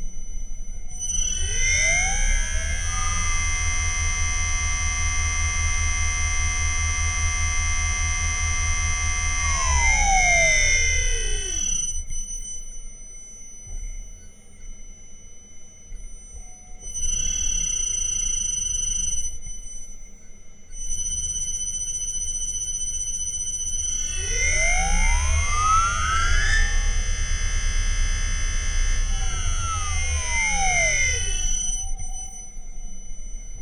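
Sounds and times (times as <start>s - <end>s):
Liebherr motor accelerating from zero to 2600 rpm with field weakening: 1.1s - 11.8s, 23.8s - 32.0s.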